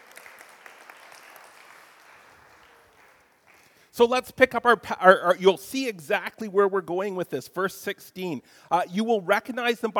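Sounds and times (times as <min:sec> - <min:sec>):
applause for volunteers: 0:00.0 - 0:03.9
speech: 0:04.0 - 0:09.9.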